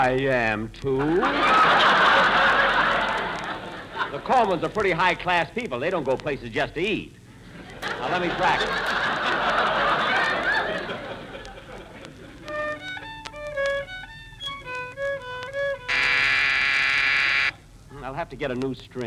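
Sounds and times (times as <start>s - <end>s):
speech: 0.0s - 2.6s, 4.1s - 7.2s, 7.8s - 9.6s, 18.2s - 19.0s
laughter: 1.0s - 4.8s, 7.5s - 12.7s
door buzzer: 15.9s - 17.6s.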